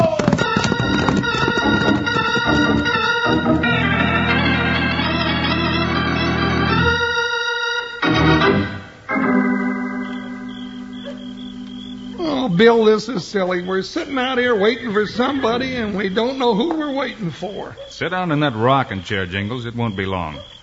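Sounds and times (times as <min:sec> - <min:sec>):
horses galloping: 0:00.0 - 0:05.2, 0:12.1 - 0:20.5
loud music with sustained chords: 0:01.9 - 0:12.2
speech: 0:12.6 - 0:20.6.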